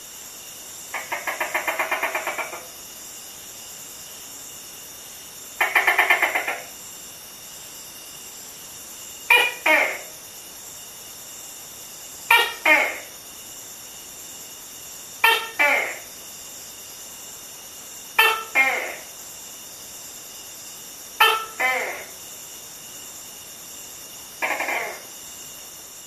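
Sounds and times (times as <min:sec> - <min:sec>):
constant high insect drone: 0:00.0 - 0:26.0
Tokay gecko two-part croaking calls: 0:00.9 - 0:02.7, 0:05.6 - 0:06.7, 0:09.3 - 0:10.2, 0:12.3 - 0:13.2, 0:15.2 - 0:16.1, 0:18.2 - 0:19.2, 0:21.2 - 0:22.2, 0:24.4 - 0:25.2.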